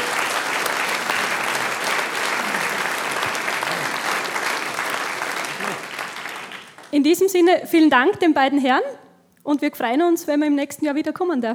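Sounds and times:
faint murmuring voices: 0:00.0 - 0:04.5
audience applause: 0:00.0 - 0:07.0
speech: 0:07.0 - 0:11.5.

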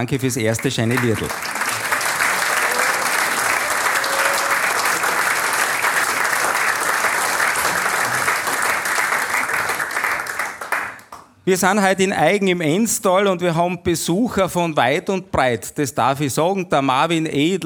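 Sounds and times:
speech: 0:00.0 - 0:01.6, 0:11.4 - 0:17.6
audience applause: 0:00.5 - 0:11.3.

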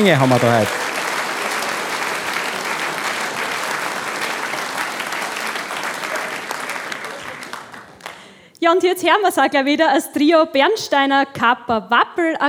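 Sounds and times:
speech: 0:00.0 - 0:00.9, 0:08.6 - 0:12.4
audience applause: 0:00.0 - 0:08.5.

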